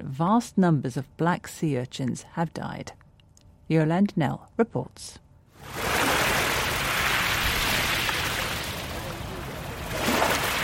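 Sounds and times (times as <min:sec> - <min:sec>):
speech: 0:00.0 - 0:03.0, 0:03.7 - 0:05.9
sea waves at Eilat in the north of the Red Sea: 0:05.6 - 0:10.6.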